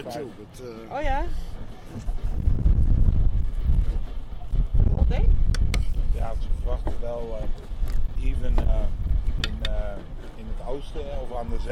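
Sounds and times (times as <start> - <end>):
speech: 0.0 - 2.4, 5.1 - 5.4, 6.2 - 11.7
strong wind blowing outdoors: 0.9 - 11.7.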